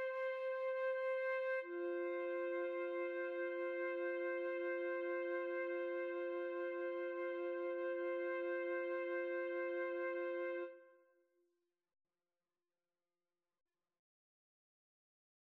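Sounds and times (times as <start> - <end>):
flute trio playing: 0.0 - 10.7.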